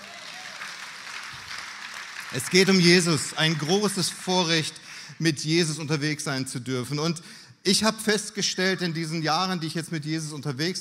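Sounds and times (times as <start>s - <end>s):
audience clapping: 0.0s - 5.0s
speech: 2.3s - 10.8s.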